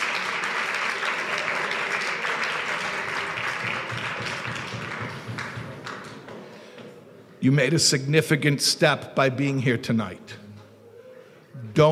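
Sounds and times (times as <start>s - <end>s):
crowd applauding: 0.0s - 6.5s
speech: 7.4s - 10.4s.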